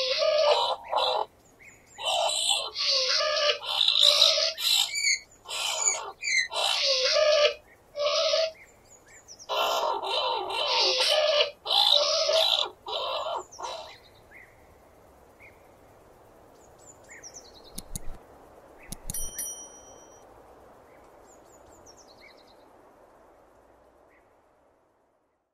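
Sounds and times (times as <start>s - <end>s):
skunk: 0.0s - 1.3s, 2.0s - 8.5s, 9.5s - 13.9s.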